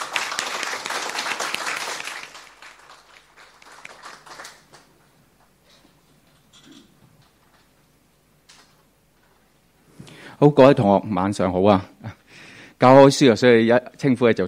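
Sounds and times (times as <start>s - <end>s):
audience applause: 0.0s - 5.0s
speech: 10.4s - 11.9s, 12.8s - 14.4s.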